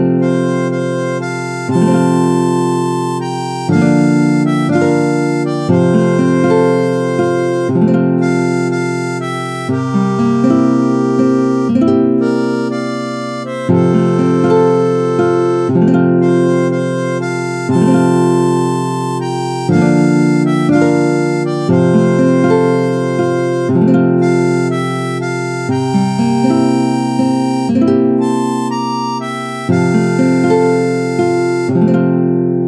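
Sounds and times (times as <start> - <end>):
harmonica: 0.1 - 32.6.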